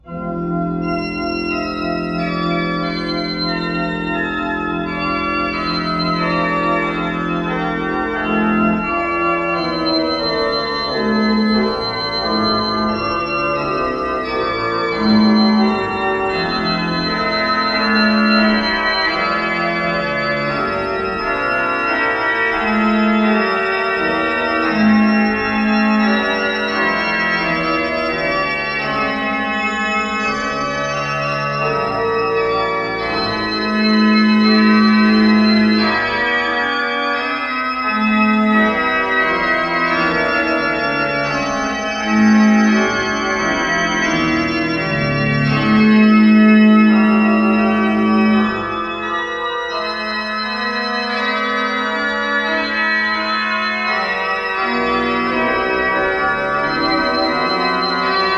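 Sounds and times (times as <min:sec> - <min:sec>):
organ piece: 0:00.0 - 0:58.3.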